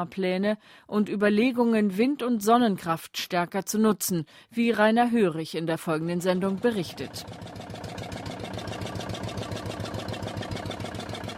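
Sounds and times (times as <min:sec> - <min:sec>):
speech: 0:00.0 - 0:07.8
small fishing boat engine chugging: 0:06.0 - 0:11.3.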